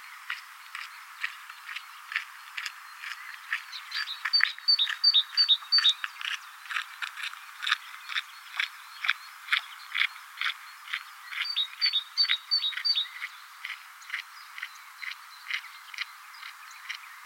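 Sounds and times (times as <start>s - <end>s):
great tit calling two-note phrases: 0.9s - 6.6s, 7.9s - 17.2s.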